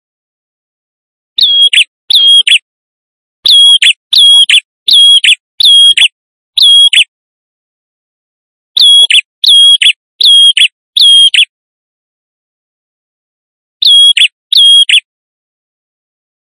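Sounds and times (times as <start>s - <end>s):
male prinia in vigorous song used as a lure: 1.4s - 2.6s, 3.4s - 7.1s, 8.8s - 11.5s, 13.8s - 15.1s.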